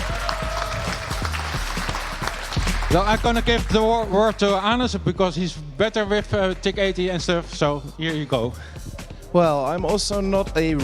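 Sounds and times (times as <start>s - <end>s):
audience clapping at a TIC-80 Byte Jam live coding event: 0.0s - 5.0s
speech: 2.9s - 10.8s.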